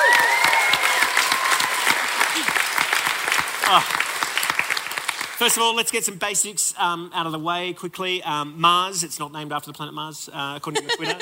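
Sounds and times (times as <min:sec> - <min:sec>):
whoops and cheers: 0:00.0 - 0:02.6
crowd applause: 0:00.0 - 0:05.7
speech: 0:03.7 - 0:04.0, 0:05.4 - 0:11.1
laughter: 0:10.6 - 0:11.1.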